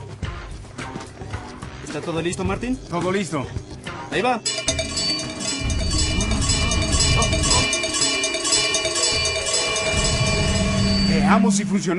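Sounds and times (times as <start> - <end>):
speech: 2.0 - 4.6, 11.3 - 11.9
cowbell ringing: 4.4 - 11.9.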